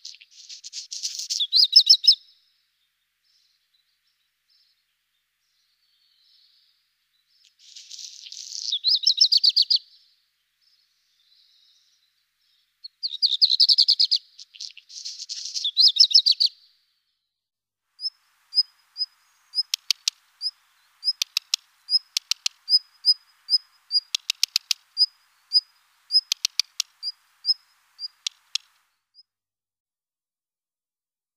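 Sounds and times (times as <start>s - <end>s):
black redstart singing: 0.0s - 2.2s, 5.4s - 9.8s, 10.6s - 16.6s, 18.0s - 29.2s.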